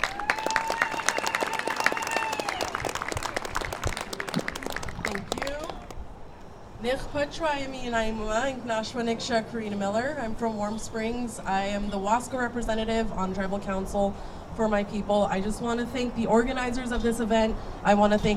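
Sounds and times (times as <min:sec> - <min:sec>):
sustained high cheer or whistle: 0:00.0 - 0:04.1
crowd applause: 0:00.0 - 0:06.0
speech: 0:06.8 - 0:18.3.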